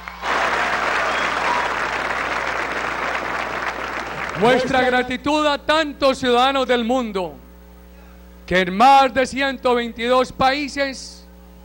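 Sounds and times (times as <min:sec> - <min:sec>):
crowd applause: 0:00.0 - 0:05.1
speech: 0:04.4 - 0:07.4, 0:08.5 - 0:11.2.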